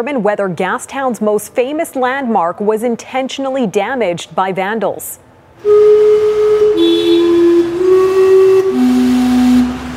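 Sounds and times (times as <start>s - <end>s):
speech: 0.0s - 6.2s
steam clock whistles chiming a short tune: 5.7s - 9.8s.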